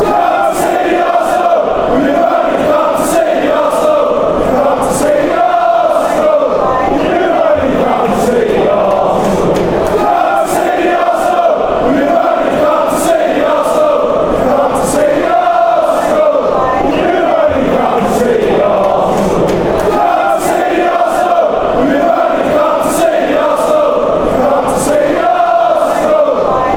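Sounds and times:
chanting: 0:00.0 - 0:26.7.

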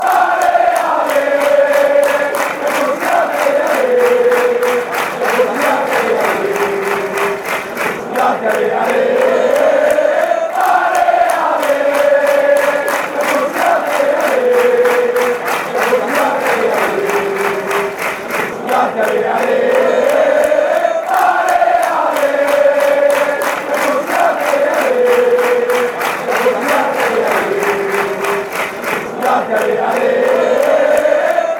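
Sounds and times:
fans chanting: 0:00.0 - 0:31.5.

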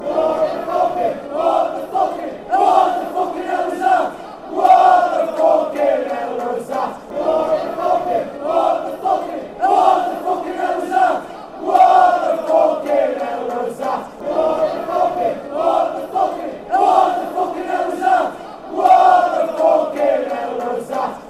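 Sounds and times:
fans chanting: 0:00.0 - 0:21.2.

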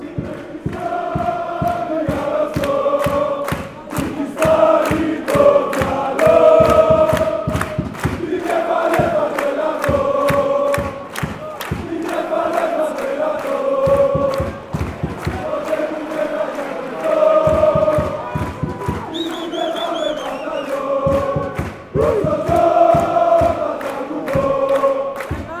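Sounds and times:
football crowd chanting: 0:00.0 - 0:25.5.

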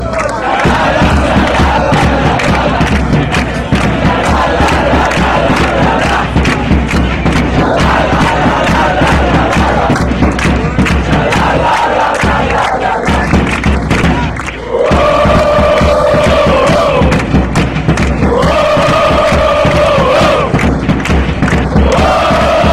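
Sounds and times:
chanting: 0:00.0 - 0:22.7.

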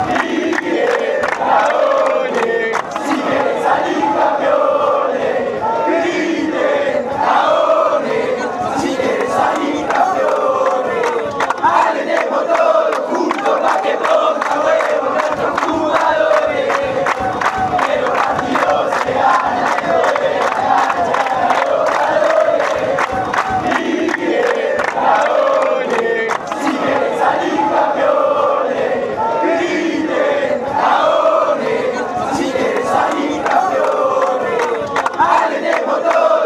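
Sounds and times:
fans chanting: 0:00.0 - 0:36.4.

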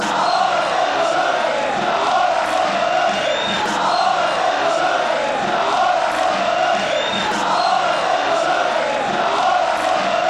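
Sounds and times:
fans chanting: 0:00.0 - 0:10.2.

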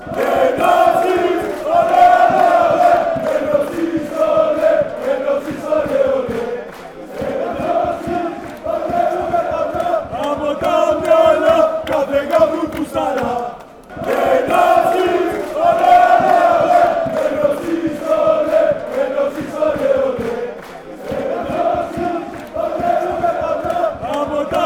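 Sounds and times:
football crowd chanting: 0:00.0 - 0:24.6.

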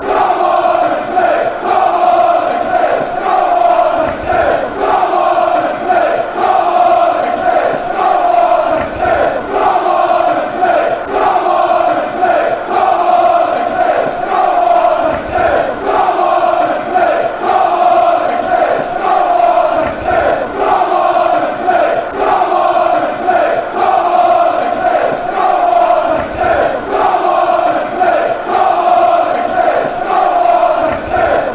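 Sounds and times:
chanting: 0:00.0 - 0:31.5.

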